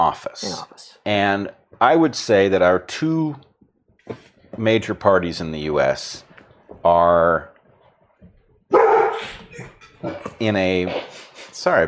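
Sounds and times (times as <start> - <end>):
speech: 0.0 - 3.5, 4.1 - 7.5, 8.7 - 11.8
dog barking at someone arriving at the door: 8.7 - 9.3.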